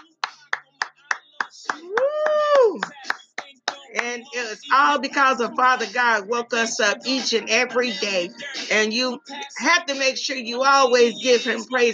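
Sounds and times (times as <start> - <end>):
hand clap: 0.0 - 4.3
speech: 4.2 - 11.9.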